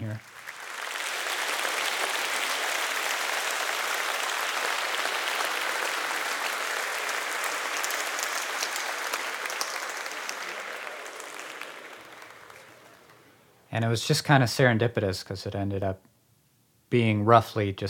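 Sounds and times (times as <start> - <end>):
recorded processed audience clapping: 0.0 - 13.5
speech: 13.8 - 16.1, 16.9 - 17.8.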